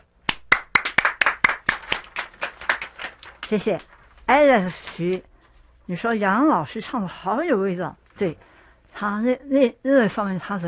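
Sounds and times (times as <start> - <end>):
hands clapping: 0.2 - 3.9
speech: 3.5 - 5.3, 5.9 - 10.6.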